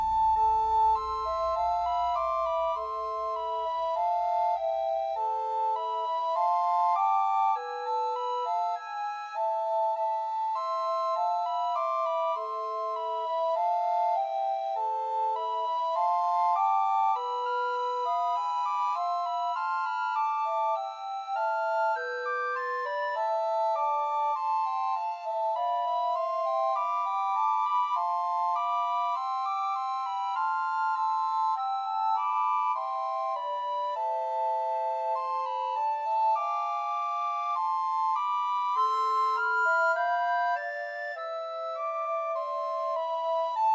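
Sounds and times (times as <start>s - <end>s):
two descant and one treble recorder playing Christmas trios: 0.1s - 43.7s.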